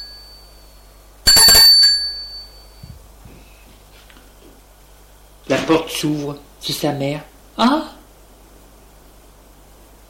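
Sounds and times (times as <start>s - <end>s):
doorbell ringing: 0.0s - 2.8s
speech: 5.7s - 8.0s.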